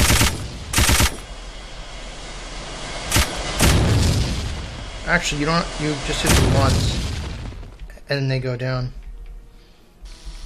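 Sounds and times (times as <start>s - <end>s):
level-3 machine gun firing in a ship-shooting video game: 0.0s - 1.3s, 3.1s - 4.0s
speech: 5.1s - 7.0s, 8.1s - 9.0s.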